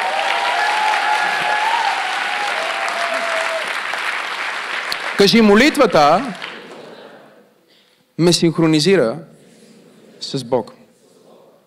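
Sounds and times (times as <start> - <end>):
audience applause: 0.0 - 7.2
speech: 5.2 - 6.4, 8.2 - 9.3, 10.2 - 10.8.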